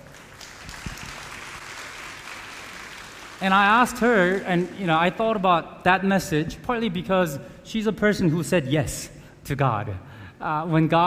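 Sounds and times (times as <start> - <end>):
round of applause: 0.0 - 4.8
speech: 3.4 - 11.0.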